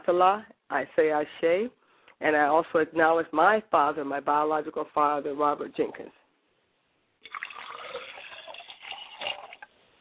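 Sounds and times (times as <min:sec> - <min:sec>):
speech: 0:00.1 - 0:06.2
liquid poured as libation: 0:07.2 - 0:09.8.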